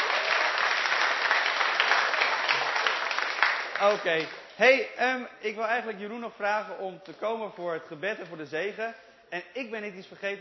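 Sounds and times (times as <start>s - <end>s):
audience applause: 0.0s - 4.4s
speech: 3.8s - 10.3s.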